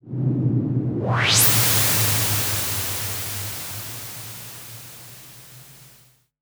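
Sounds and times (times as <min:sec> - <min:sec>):
Virus noise: 0:01.0 - 0:06.1.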